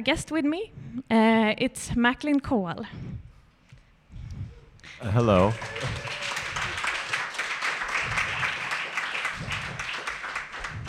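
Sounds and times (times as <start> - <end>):
speech: 0.0 - 3.1, 4.9 - 6.2
audience applause: 5.0 - 10.8.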